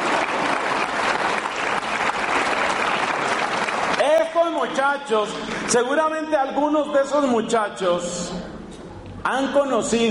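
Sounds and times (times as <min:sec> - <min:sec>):
group applauding: 0:00.0 - 0:05.9
speech: 0:04.8 - 0:08.4, 0:09.2 - 0:10.0.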